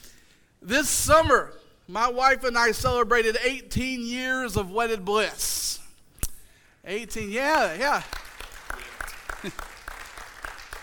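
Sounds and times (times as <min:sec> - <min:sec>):
speech: 0:00.6 - 0:05.7, 0:06.8 - 0:08.2, 0:09.4 - 0:09.7
audience applause: 0:08.0 - 0:10.8.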